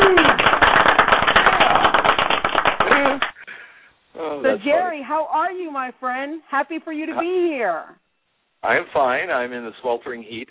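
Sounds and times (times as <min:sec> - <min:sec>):
audience clapping: 0:00.0 - 0:03.4
speech: 0:04.9 - 0:08.0, 0:08.6 - 0:10.5.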